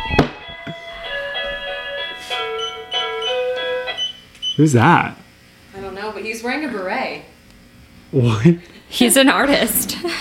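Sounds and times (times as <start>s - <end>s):
doorbell ringing: 0.6s - 4.2s
speech: 4.6s - 5.2s, 8.1s - 10.1s.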